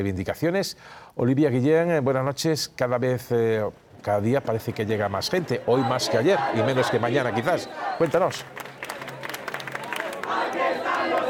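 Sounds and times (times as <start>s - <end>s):
speech: 0.0s - 8.6s
protest crowd chanting in city square: 4.4s - 11.2s.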